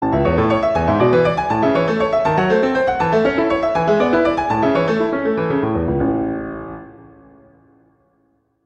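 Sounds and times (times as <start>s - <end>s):
prelude in A major: 0.0s - 7.4s.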